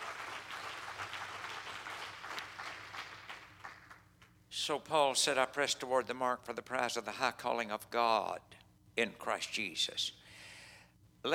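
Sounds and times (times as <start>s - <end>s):
audience clapping hands: 0.0s - 4.4s
speech: 4.7s - 10.2s.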